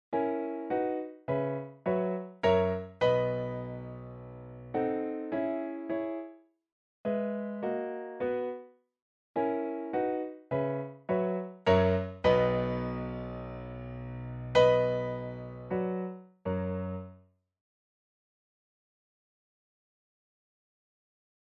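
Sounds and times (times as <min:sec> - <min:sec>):
piano piece: 0:00.1 - 0:06.4, 0:07.1 - 0:08.7, 0:09.4 - 0:17.2.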